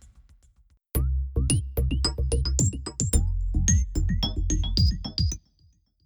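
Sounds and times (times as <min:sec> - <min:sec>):
electronic loops: 0:01.0 - 0:05.4.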